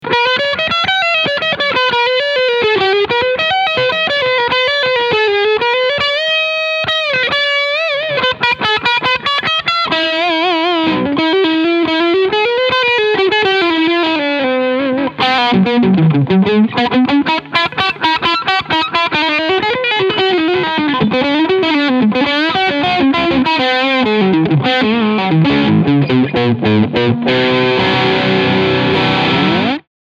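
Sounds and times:
overdriven electric guitar lead: 0.0 - 29.9.

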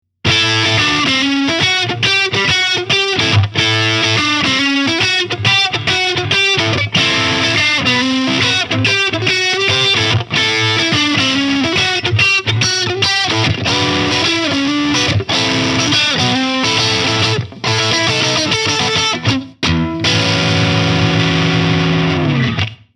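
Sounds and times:
Fender AV II 57 Stratocaster electric guitar lead: 0.2 - 22.9.

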